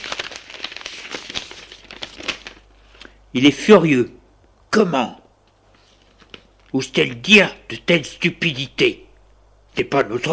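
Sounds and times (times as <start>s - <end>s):
paper letter being handled and unfolded: 0.0s - 3.0s, 5.7s - 6.8s
speech: 3.3s - 4.2s, 4.8s - 5.2s, 6.7s - 9.0s, 9.8s - 10.3s.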